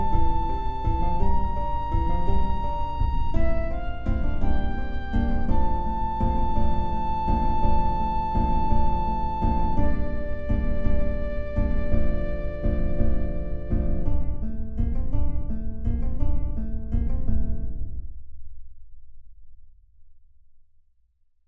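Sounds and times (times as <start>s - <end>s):
flute: 0.0s - 14.4s
guitar: 0.0s - 18.1s.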